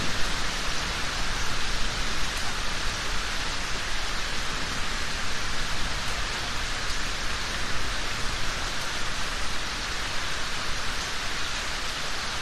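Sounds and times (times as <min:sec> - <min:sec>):
thunder: 0:00.0 - 0:02.1
rain in a yard: 0:00.0 - 0:12.3.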